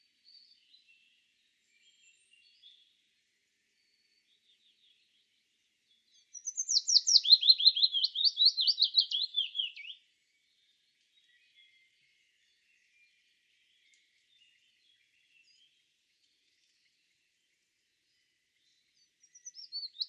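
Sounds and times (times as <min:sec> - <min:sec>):
willow warbler singing: 0:00.2 - 0:03.1, 0:03.7 - 0:20.0.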